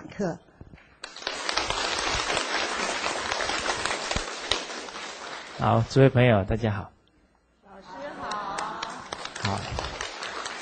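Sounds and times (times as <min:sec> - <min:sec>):
speech: 0:00.2 - 0:00.4, 0:05.6 - 0:07.0
audience applause: 0:01.1 - 0:05.6, 0:08.2 - 0:10.6.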